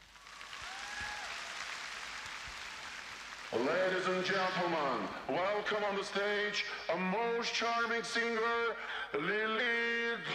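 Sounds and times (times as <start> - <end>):
audience applause: 0.0 - 5.3
speech: 3.5 - 10.3.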